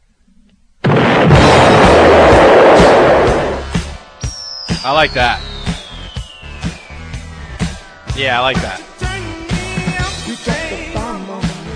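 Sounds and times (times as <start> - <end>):
explosion sound effect: 0.8 - 8.7
speech: 4.9 - 5.5, 8.2 - 8.9.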